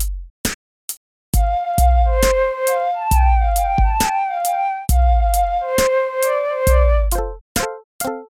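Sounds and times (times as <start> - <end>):
tape flute: 1.4 - 7.2.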